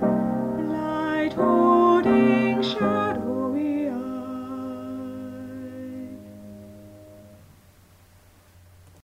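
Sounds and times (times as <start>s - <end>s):
voices singing a melody: 0.6s - 6.3s.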